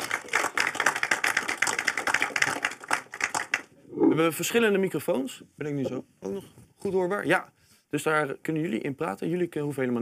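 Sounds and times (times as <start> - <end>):
audience applause: 0.0 - 3.7
speech: 4.2 - 10.0.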